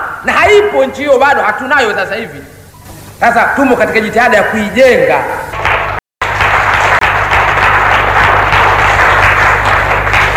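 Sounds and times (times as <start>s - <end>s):
speech: 0.2s - 2.6s, 3.2s - 5.5s
audience clapping during a political speech: 5.6s - 10.3s.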